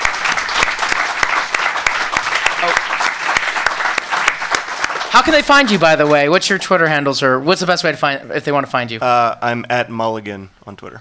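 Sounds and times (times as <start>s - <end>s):
audience applause: 0.0s - 6.3s
speech: 5.2s - 10.9s.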